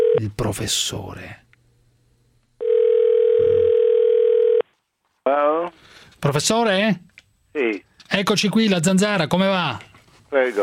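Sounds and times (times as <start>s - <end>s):
telephone line ring tone: 0.0s - 0.2s, 2.6s - 4.6s
speech: 0.2s - 1.4s, 5.3s - 10.6s.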